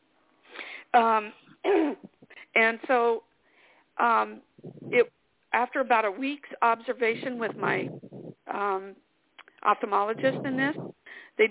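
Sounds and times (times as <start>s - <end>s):
speech: 1.0s - 3.3s, 4.0s - 9.0s, 9.6s - 11.4s
person with sinus trouble coughing and clearing throat: 1.6s - 2.1s.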